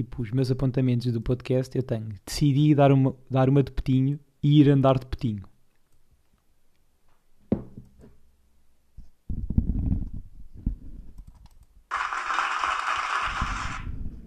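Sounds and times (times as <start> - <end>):
speech: 0.0 - 5.5
applause sound effect: 11.9 - 13.8.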